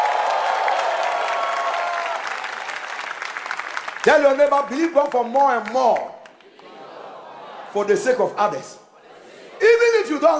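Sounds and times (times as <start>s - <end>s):
audience clapping: 0.0s - 6.9s
speech: 4.0s - 6.2s, 7.7s - 8.8s, 9.6s - 10.3s
laughter: 6.4s - 10.3s.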